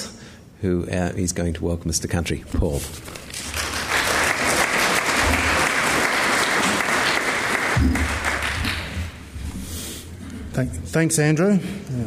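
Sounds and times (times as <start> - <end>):
speech: 0.6 - 3.2, 10.6 - 12.0
audience applause welcoming a speaker for a Welcome to Country: 3.1 - 9.3.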